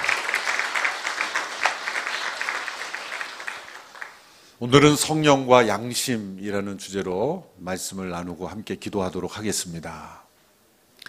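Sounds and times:
audience applause: 0.0s - 4.5s
speech: 4.6s - 10.2s.

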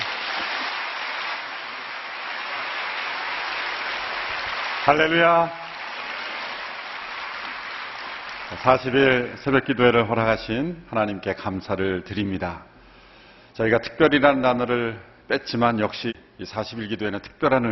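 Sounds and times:
audience applauding: 0.0s - 9.4s
speech: 4.9s - 5.6s, 8.6s - 12.7s, 13.6s - 17.6s.

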